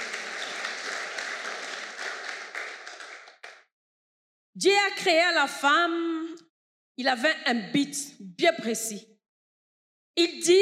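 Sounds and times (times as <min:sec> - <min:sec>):
church congregation clapping in a French-language service: 0:00.0 - 0:03.7
speech: 0:04.6 - 0:06.4, 0:07.0 - 0:09.1, 0:10.2 - 0:10.6.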